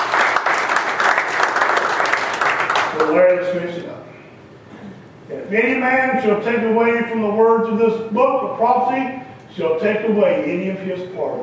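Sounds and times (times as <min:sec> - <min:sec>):
church congregation applauding during a service: 0:00.0 - 0:03.5
speech: 0:03.0 - 0:04.0, 0:05.5 - 0:11.4.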